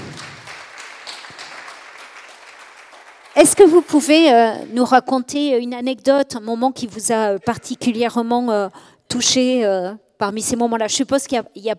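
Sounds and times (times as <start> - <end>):
audience applause: 0.0 - 3.8
speech: 3.4 - 11.7.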